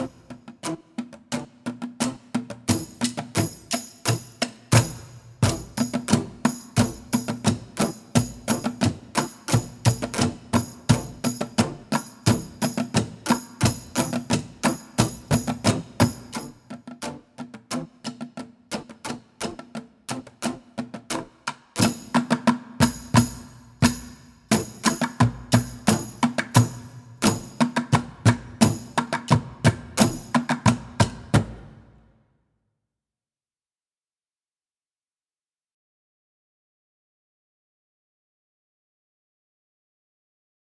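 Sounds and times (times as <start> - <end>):
percussion: 0.0 - 32.1.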